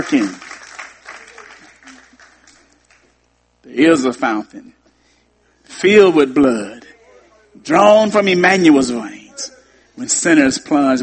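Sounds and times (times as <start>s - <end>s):
speech: 0.0s - 0.5s, 3.7s - 4.8s, 5.8s - 6.8s, 7.6s - 11.0s
congregational clapping during a church service: 0.0s - 3.2s.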